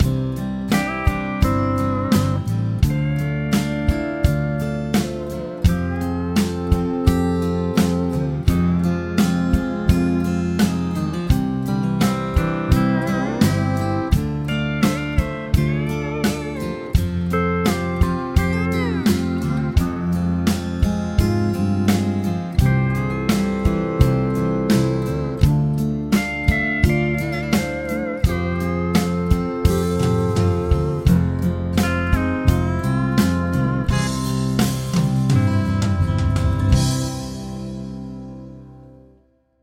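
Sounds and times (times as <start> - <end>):
chord progression with mixture: 0.0 - 39.4.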